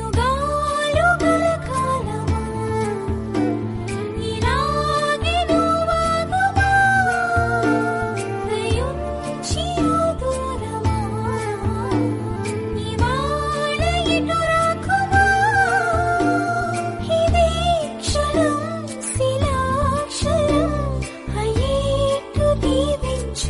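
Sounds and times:
Telugu song: 0.2s - 23.4s.

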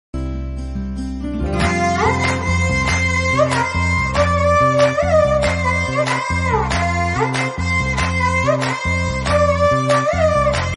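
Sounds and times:
entry background music: 0.2s - 10.7s.

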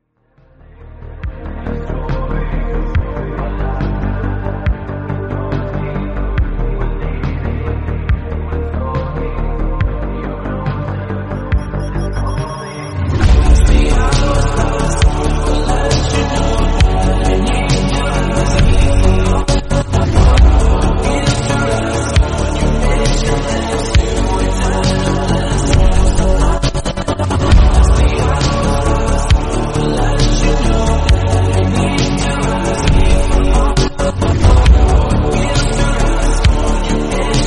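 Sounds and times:
English remix music: 0.5s - 37.4s.

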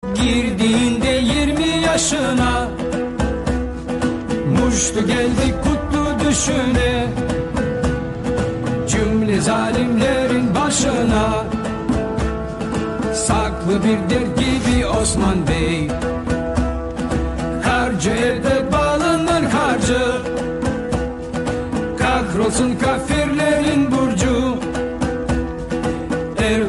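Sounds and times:
Arabic song: 0.1s - 26.6s.

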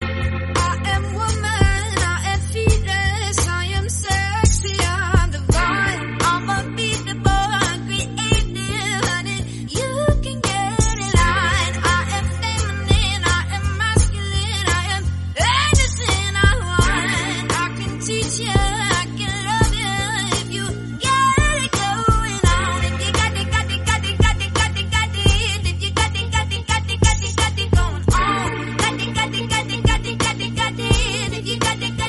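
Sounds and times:
English song: 0.0s - 3.2s, 4.2s - 32.0s.

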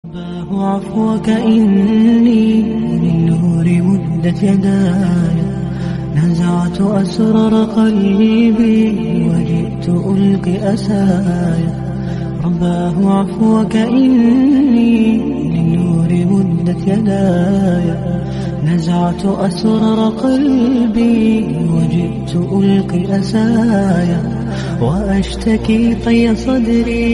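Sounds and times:
slowed Islamic nasheed song: 0.0s - 27.1s.

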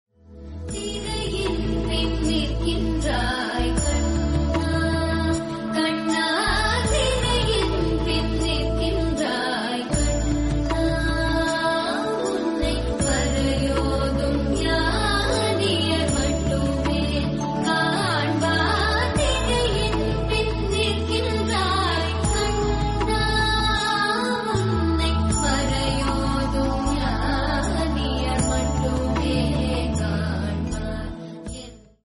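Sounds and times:
South Indian devotional music: 0.2s - 32.0s.

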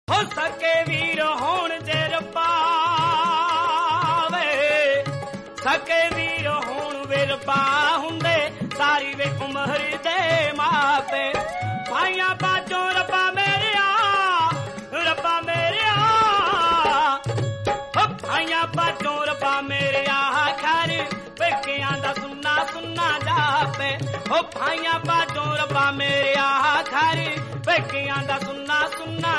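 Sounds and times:
Punjabi music: 0.0s - 29.3s.

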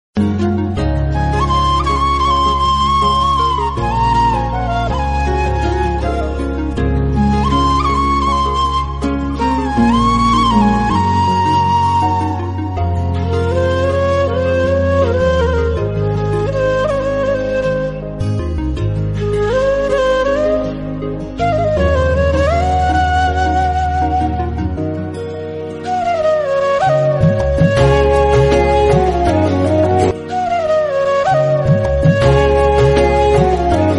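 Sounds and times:
background music melody: 0.2s - 33.9s.

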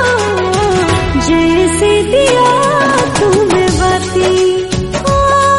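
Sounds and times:
Hindi song: 0.2s - 5.4s.

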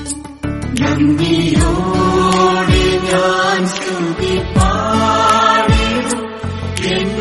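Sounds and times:
Malayalam song: 0.6s - 7.1s.

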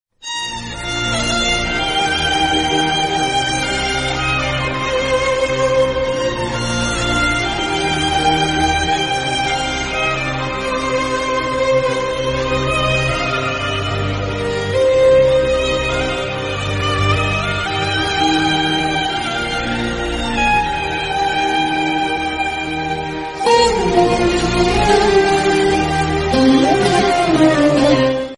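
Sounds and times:
sad background music: 0.4s - 28.3s.

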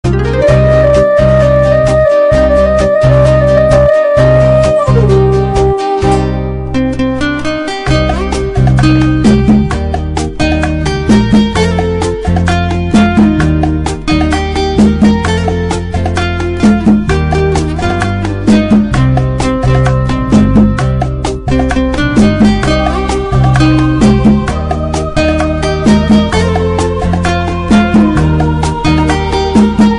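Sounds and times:
guitar: 0.0s - 29.9s.

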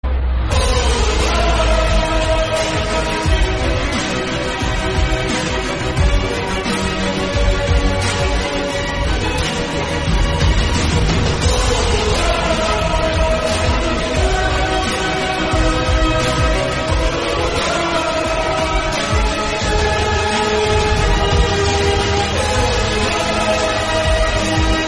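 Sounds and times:
intro background music: 0.0s - 24.8s.

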